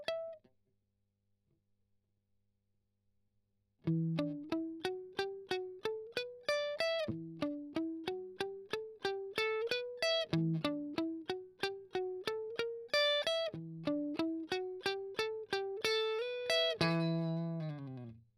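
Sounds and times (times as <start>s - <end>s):
strummed octave arpeggio: 3.9s - 18.2s.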